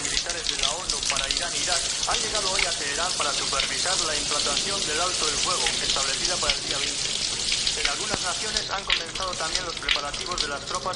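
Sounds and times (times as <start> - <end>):
shower water running: 0.0 - 10.9
speech: 2.1 - 10.9.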